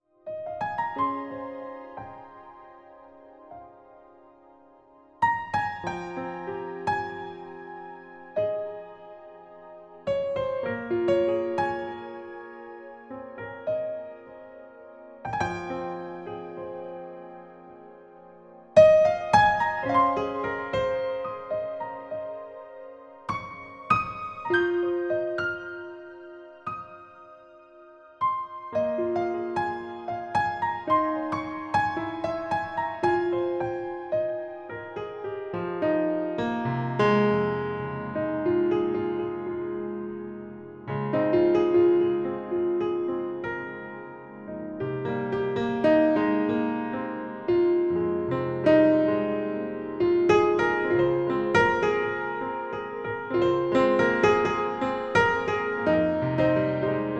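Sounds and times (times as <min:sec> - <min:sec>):
beach piano music: 0:00.2 - 0:57.1.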